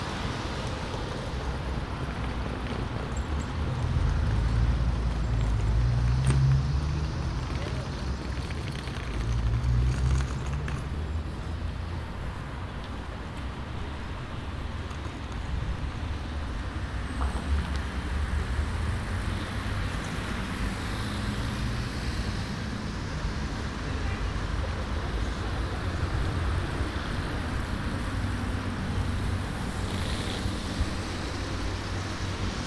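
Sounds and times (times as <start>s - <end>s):
heavy vehicles passing: 0.0s - 32.6s
traffic rumble on the Kneuterdijk in The Hague: 0.0s - 32.6s.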